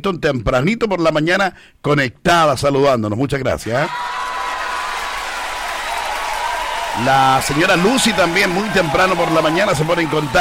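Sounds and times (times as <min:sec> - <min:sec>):
speech: 0:00.0 - 0:04.2, 0:07.0 - 0:10.4
applause sound effect played on a radio show: 0:03.9 - 0:10.4.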